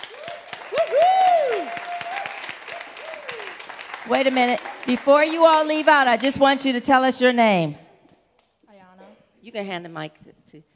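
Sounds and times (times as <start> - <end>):
audience clapping: 0.0 - 6.9
person cheering with drawn-out whoops: 0.1 - 3.6
speech: 4.1 - 7.8, 9.5 - 10.7.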